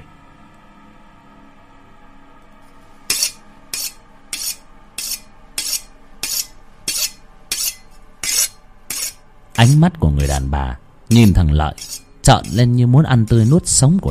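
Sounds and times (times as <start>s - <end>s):
razor blade being sharpened, scraping: 3.1s - 10.4s, 11.1s - 12.7s, 13.3s - 14.0s
speech: 9.6s - 14.0s.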